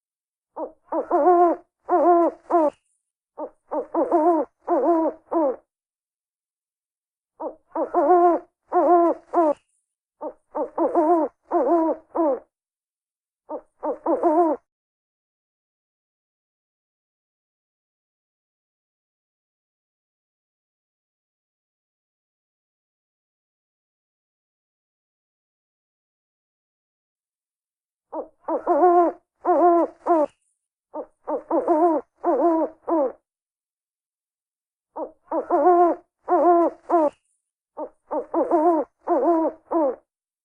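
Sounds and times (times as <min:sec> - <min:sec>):
owls and short owls calling: 0:00.6 - 0:02.8, 0:03.4 - 0:05.6, 0:07.4 - 0:09.6, 0:10.2 - 0:12.4, 0:13.5 - 0:14.6, 0:28.1 - 0:30.4, 0:31.0 - 0:33.2, 0:35.0 - 0:37.2, 0:37.8 - 0:40.0.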